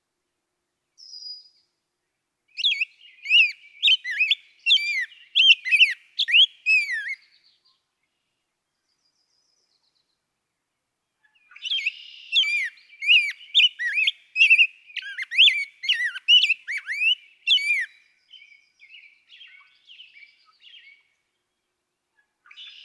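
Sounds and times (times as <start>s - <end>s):
Rose-breasted Grosbeak whistled song: 1.0s - 1.6s, 2.6s - 7.6s, 11.4s - 21.1s.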